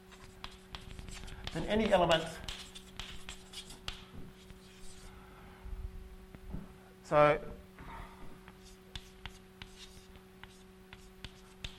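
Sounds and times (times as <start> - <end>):
faint writing with scratchy strokes and light taps: 0.0 - 5.2, 8.4 - 11.7
low steady hum: 0.0 - 11.7
speech: 1.5 - 2.5, 7.1 - 7.6.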